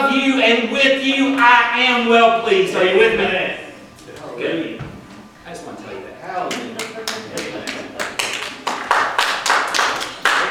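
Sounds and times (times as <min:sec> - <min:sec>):
speech: 0:00.1 - 0:03.6
audience clapping: 0:06.5 - 0:10.4.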